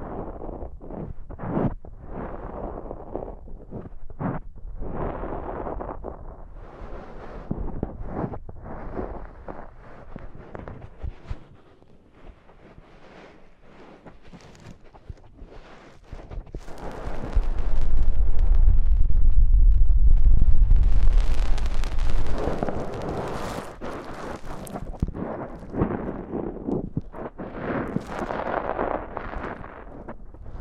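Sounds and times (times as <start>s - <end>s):
deep ear cleaning rustling, scraping and crackling: 0.0s - 30.6s
loud rumbling rush: 16.3s - 30.6s.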